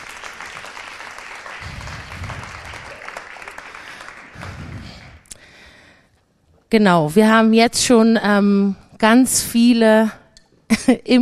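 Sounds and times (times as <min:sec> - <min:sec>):
audience applause for panel guests: 0:00.0 - 0:05.3
speech: 0:06.7 - 0:11.2.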